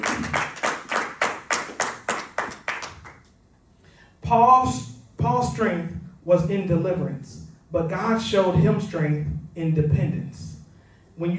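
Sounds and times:
hand clapping: 0.0s - 3.4s
speech: 4.3s - 10.5s, 11.2s - 11.3s.

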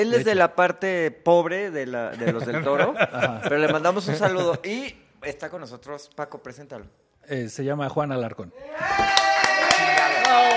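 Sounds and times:
speech: 0.0s - 9.2s
laughter: 2.1s - 4.8s
audience clapping: 8.9s - 10.5s.

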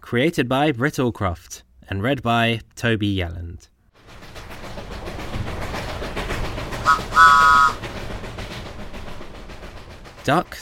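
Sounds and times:
speech: 0.1s - 3.7s, 10.3s - 10.6s
steam train chugging along railway: 4.0s - 10.6s
steam train whistle: 6.8s - 7.8s.

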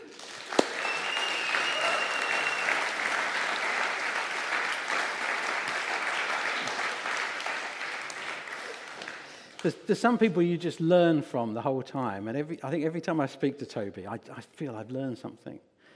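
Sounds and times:
audience clapping: 0.0s - 9.9s
speech: 9.6s - 15.7s.

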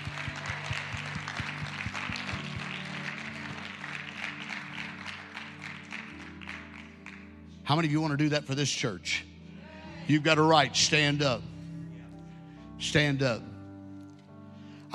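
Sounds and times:
rhythmic thumps: 0.0s - 3.8s
audience clapping: 0.0s - 7.9s
speech: 7.7s - 9.3s, 10.1s - 11.5s, 12.8s - 13.5s.

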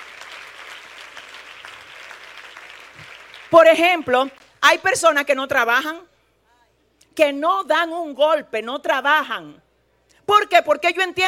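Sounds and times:
crowd applause: 0.0s - 3.5s
speech: 3.5s - 6.1s, 7.2s - 9.6s, 10.3s - 11.2s.

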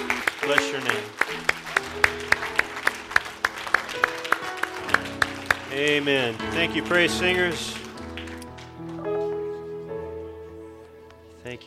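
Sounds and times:
applause: 0.0s - 9.0s
speech: 0.5s - 2.1s, 5.8s - 7.8s.

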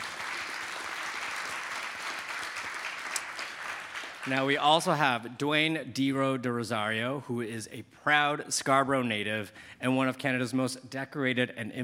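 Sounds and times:
audience applause: 0.0s - 4.6s
speech: 4.2s - 11.8s.

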